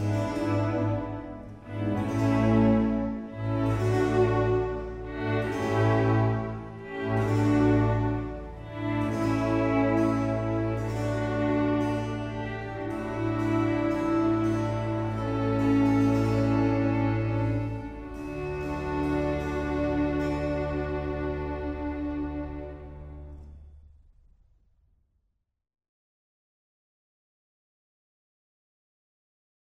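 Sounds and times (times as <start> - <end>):
oboe concerto adagio e staccato: 0.0 - 23.6.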